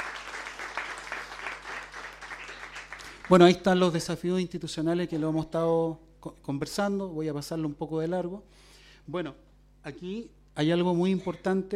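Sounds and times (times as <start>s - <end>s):
audience applause: 0.0s - 3.6s
speech: 3.3s - 11.7s.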